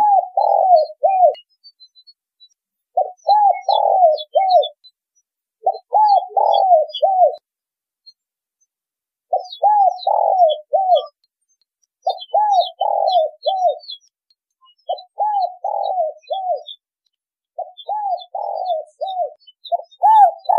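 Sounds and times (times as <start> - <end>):
spotted dove cooing: 0.0 - 1.4, 3.0 - 4.8, 5.6 - 7.4, 9.3 - 11.2, 12.0 - 14.0, 14.9 - 16.8, 17.6 - 20.5.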